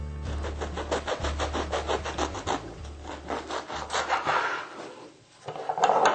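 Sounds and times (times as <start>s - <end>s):
knife cutting crunchy bread: 0.4s - 4.7s.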